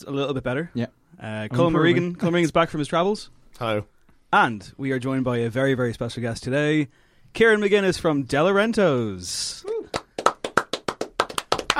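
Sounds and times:
speech: 0.0 - 9.8
person clapping hands: 9.6 - 11.7.

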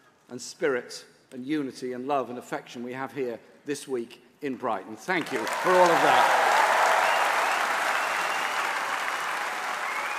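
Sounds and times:
speech: 0.3 - 6.4
thunderous conference applause from a large crowd: 5.2 - 10.1.

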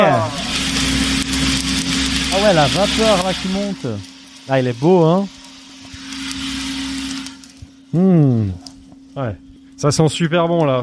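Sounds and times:
coffee roaster cooling tray churning beans: 0.0 - 10.8
coffee roaster motor hum: 0.0 - 10.8
speech: 2.4 - 5.4, 7.9 - 8.6, 9.2 - 10.8.

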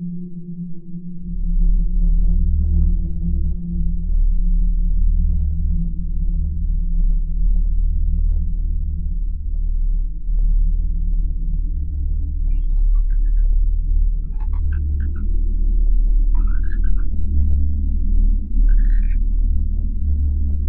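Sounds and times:
deep rumbling drone: 0.0 - 20.6
layered low hum: 0.4 - 20.6
warbling creature-like calls: 12.5 - 13.4, 14.2 - 15.3, 16.4 - 17.2, 18.7 - 19.2.

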